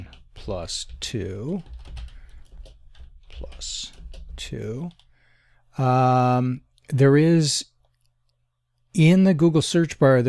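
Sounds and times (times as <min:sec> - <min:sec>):
typing on a computer keyboard: 0:00.0 - 0:05.1
speech: 0:00.5 - 0:01.8, 0:03.4 - 0:05.0, 0:05.8 - 0:07.7, 0:09.0 - 0:10.2.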